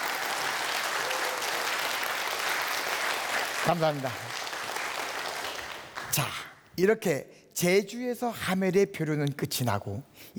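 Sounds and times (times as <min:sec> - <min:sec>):
audience applause: 0:00.0 - 0:06.2
speech: 0:03.7 - 0:04.4, 0:06.1 - 0:10.3.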